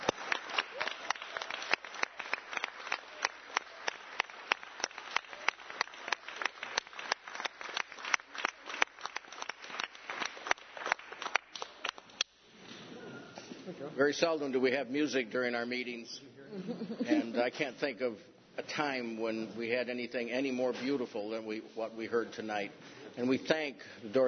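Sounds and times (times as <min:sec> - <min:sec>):
audience applause: 0:00.0 - 0:12.2
speech: 0:14.0 - 0:24.2.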